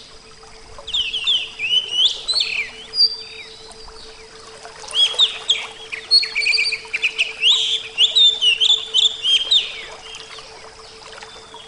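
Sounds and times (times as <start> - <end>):
Oriental magpie-robin song: 0.0 - 11.6
faint hum: 0.0 - 11.6.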